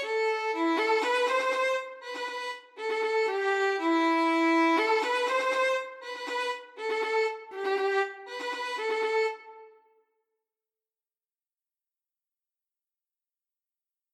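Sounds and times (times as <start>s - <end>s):
violin arrangement: 0.0s - 9.9s.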